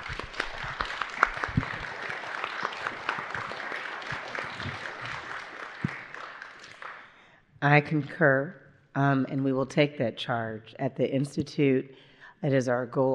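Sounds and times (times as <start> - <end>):
audience applause: 0.0 - 7.2
speech: 7.6 - 13.1.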